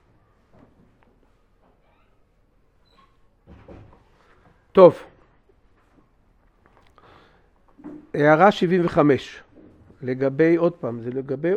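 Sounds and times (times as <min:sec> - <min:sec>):
faint knocks and shuffles: 0:00.0 - 0:11.5
door being closed: 0:03.4 - 0:04.0
speech: 0:04.8 - 0:05.1, 0:08.2 - 0:09.4, 0:10.0 - 0:11.5.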